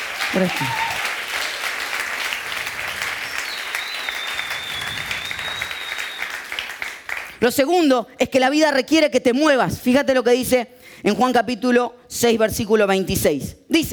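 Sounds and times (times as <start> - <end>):
audience applause: 0.0 - 7.4
speech: 0.3 - 0.9, 7.4 - 13.9.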